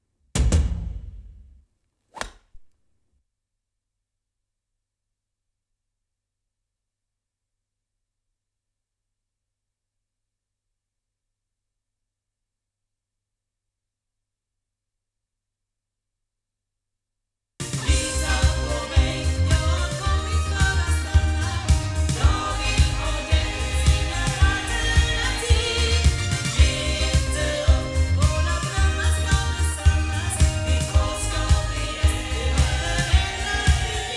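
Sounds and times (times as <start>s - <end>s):
loudspeakers: 17.7s - 34.1s.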